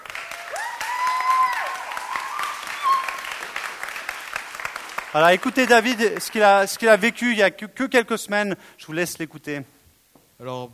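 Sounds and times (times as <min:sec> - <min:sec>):
audience applause: 0:00.0 - 0:07.1
speech: 0:05.2 - 0:09.8, 0:10.4 - 0:10.7.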